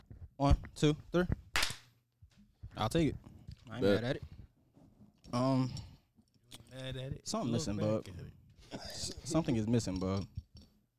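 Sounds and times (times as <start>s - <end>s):
speech: 0.4s - 1.4s, 2.8s - 4.3s, 5.3s - 5.9s, 6.8s - 10.4s
quick clap: 1.6s - 1.8s.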